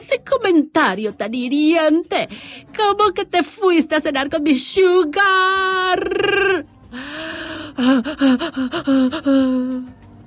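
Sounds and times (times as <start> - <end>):
speech: 0.3 - 7.1, 7.8 - 10.0
anxious gasping breaths: 2.3 - 2.7, 6.8 - 10.0.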